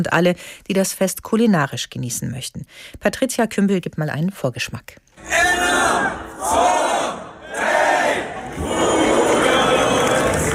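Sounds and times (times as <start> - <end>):
speech: 0.0 - 6.7
large festival crowd cheering and shouting: 5.2 - 10.5.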